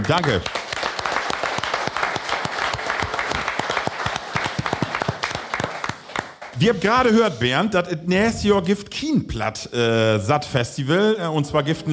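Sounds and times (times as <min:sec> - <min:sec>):
speech: 0:00.0 - 0:00.6, 0:06.6 - 0:11.9
audience applause: 0:00.0 - 0:07.2.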